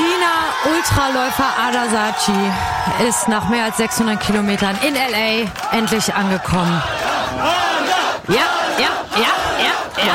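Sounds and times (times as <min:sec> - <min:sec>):
hundreds of fans cheering at finish line: 0:00.0 - 0:10.1
speech: 0:00.9 - 0:10.1.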